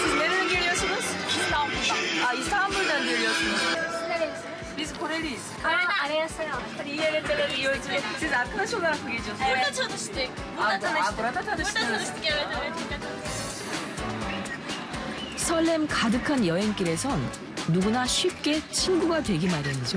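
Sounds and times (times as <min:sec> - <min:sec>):
young travelers chatting and laughing in train sleeper car: 0:00.0 - 0:15.4
speech: 0:04.8 - 0:13.3, 0:15.5 - 0:19.9.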